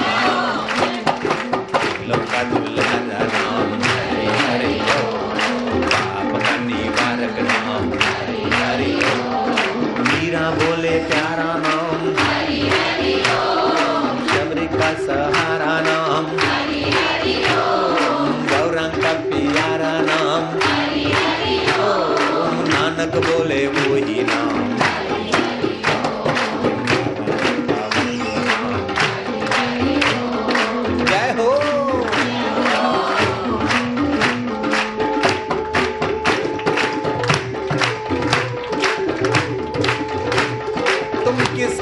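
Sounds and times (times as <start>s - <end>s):
audience clapping: 0.0s - 41.8s
speech: 2.4s - 2.6s.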